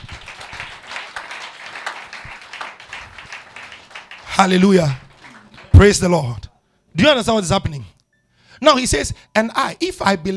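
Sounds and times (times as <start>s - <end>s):
crowd clapping: 0.0s - 6.4s
speech: 4.4s - 5.0s, 5.8s - 8.0s, 8.6s - 10.3s.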